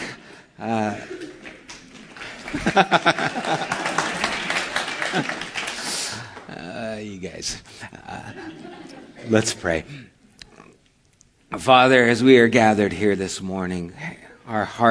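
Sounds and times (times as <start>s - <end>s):
speech: 0.6s - 1.2s, 2.5s - 3.7s, 5.2s - 5.4s, 7.0s - 10.2s, 11.5s - 14.8s
laughter: 0.6s - 6.9s, 7.8s - 9.8s
audience clapping: 0.7s - 7.0s.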